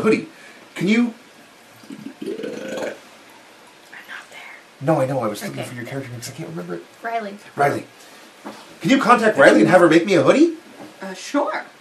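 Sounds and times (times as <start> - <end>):
speech: 0.0 - 1.2, 4.8 - 11.7
wine pouring into a glass: 1.6 - 4.1.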